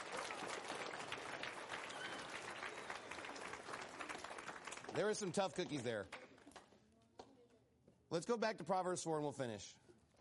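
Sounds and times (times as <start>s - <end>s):
crowd clapping: 0.0s - 6.8s
speech: 5.0s - 6.2s, 8.1s - 9.8s.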